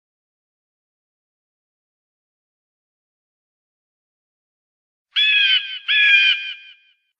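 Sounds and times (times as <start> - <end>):
eagle giving a high quavering trilled cry: 5.2 - 6.8.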